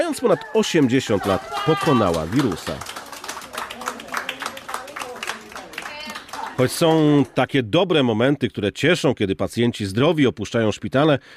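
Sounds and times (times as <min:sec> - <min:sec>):
hospital staff applauding a recovered patient: 0:00.0 - 0:07.4
speech: 0:00.1 - 0:03.0, 0:06.6 - 0:11.3.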